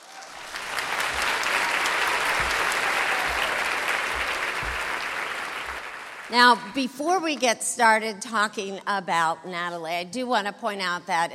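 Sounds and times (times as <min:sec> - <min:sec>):
audience applause at a live true-crime convention: 0:00.0 - 0:06.3
speech: 0:06.3 - 0:11.3.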